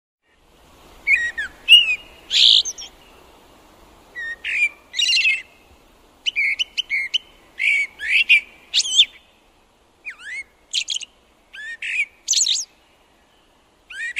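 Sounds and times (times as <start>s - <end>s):
blackbird singing: 1.1s - 3.3s, 4.2s - 5.6s, 6.2s - 9.3s, 10.0s - 14.1s.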